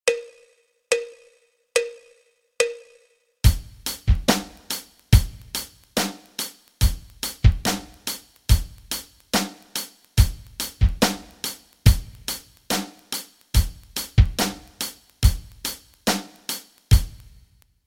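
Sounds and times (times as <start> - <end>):
rock rhythms: 3.4 - 17.5.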